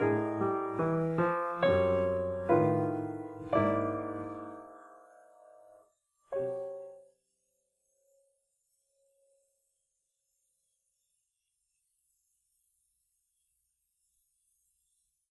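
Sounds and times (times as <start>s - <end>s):
piano piece: 0.0s - 7.2s.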